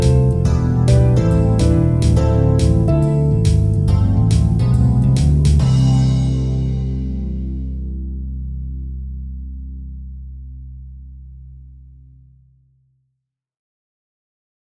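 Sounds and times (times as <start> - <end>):
jazz music: 0.0 - 8.8.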